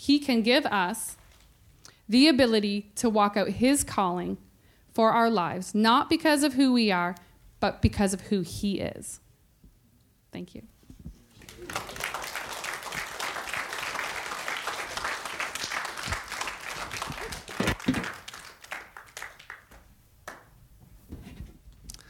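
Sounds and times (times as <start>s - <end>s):
speech: 0.0s - 1.2s, 2.1s - 4.4s, 5.0s - 9.2s, 10.3s - 10.7s
audience applause welcoming a speaker: 11.3s - 20.4s.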